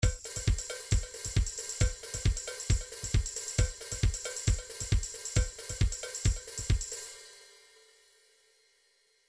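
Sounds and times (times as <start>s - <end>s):
trance MIDI loop beats: 0.0s - 7.0s.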